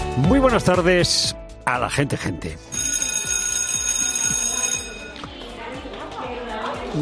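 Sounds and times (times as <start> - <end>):
speech: 0.1 - 2.7
loud electric school bell ringing: 2.7 - 5.3
murmur of voices: 5.3 - 7.0.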